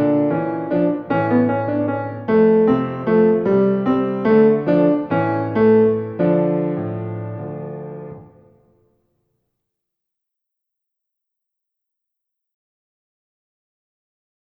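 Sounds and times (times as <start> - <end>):
minuet accompaniment: 0.0 - 8.6.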